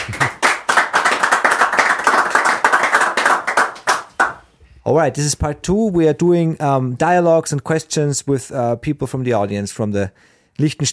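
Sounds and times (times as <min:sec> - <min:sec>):
audience applause: 0:00.0 - 0:04.4
speech: 0:04.9 - 0:10.9.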